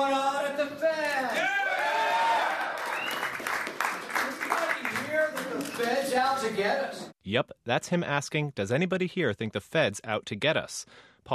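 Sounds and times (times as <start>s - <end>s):
crowd shouting and cheering: 0.9s - 3.5s
crowd applauding at campaign event: 1.6s - 6.4s
speech: 6.2s - 11.3s.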